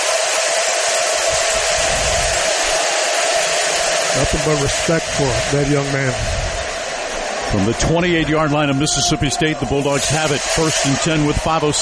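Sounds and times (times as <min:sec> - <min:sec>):
stadium crowd cheering: 0:00.0 - 0:11.8
speech: 0:04.3 - 0:06.6, 0:07.5 - 0:11.8.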